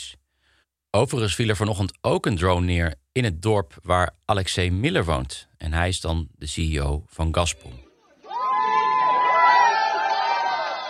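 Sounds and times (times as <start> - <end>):
speech: 0.9 - 7.8
wedding guests cheering in a bomb shelter: 8.0 - 10.8
high sustained whoop: 8.3 - 10.8.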